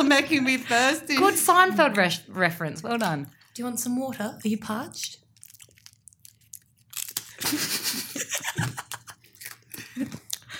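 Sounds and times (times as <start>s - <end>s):
speech: 0.0s - 5.2s, 10.0s - 10.2s
crunching and chewing Jatz crackers: 5.2s - 7.6s, 8.8s - 10.5s
laughter: 7.4s - 9.2s.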